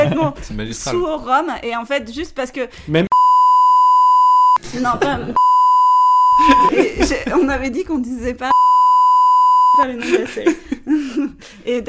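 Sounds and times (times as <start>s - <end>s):
speech: 0.1s - 3.1s, 4.7s - 5.4s, 6.5s - 8.6s, 9.8s - 11.8s
censor bleep: 3.1s - 4.6s, 5.4s - 6.7s, 8.5s - 9.8s
laughter: 4.6s - 5.5s, 6.3s - 7.5s, 9.8s - 11.5s.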